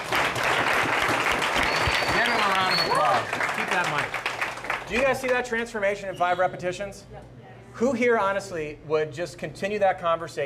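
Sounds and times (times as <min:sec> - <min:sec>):
audience applause: 0:00.0 - 0:05.4
speech: 0:04.9 - 0:10.4.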